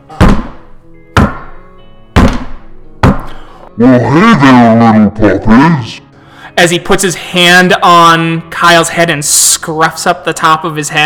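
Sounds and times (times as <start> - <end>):
heavy footsteps: 2.2 - 3.4
speech: 3.8 - 6.0, 6.6 - 11.0.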